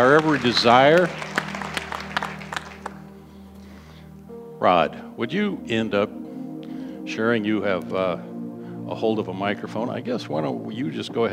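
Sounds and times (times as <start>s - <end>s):
speech: 0.0s - 1.3s, 4.6s - 6.3s, 7.1s - 8.3s, 8.9s - 11.3s
audience hand clapping: 0.0s - 3.3s.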